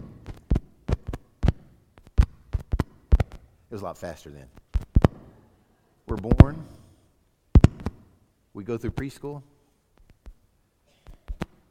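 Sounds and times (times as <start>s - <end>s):
heartbeat: 0.0s - 3.5s, 4.7s - 5.3s, 7.6s - 8.0s
speech: 3.7s - 4.6s, 6.1s - 6.8s, 8.6s - 9.5s.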